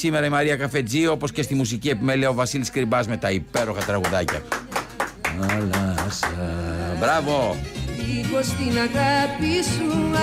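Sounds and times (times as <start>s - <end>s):
speech: 0.0s - 4.8s, 5.4s - 10.2s
sharp claps in a Greek television studio: 3.5s - 6.6s.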